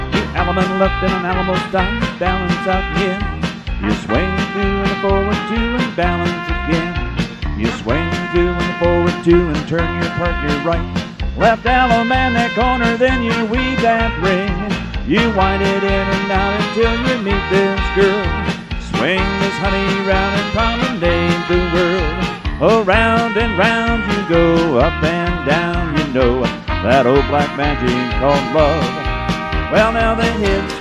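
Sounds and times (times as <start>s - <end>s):
vocals: 0.1s - 30.8s.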